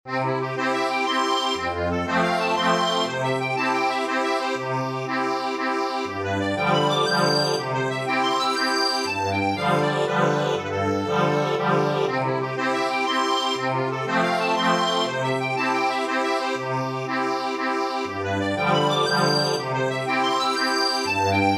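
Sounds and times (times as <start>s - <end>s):
accordion: 0.1s - 21.5s.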